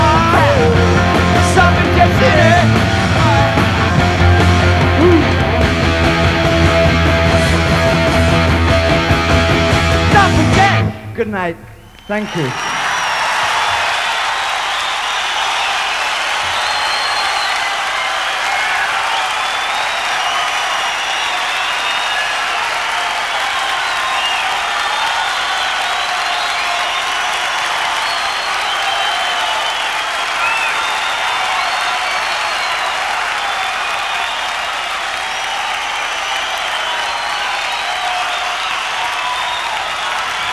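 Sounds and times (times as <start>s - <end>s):
concert audience applauding for an encore: 0.0s - 40.5s
speech: 11.2s - 12.7s.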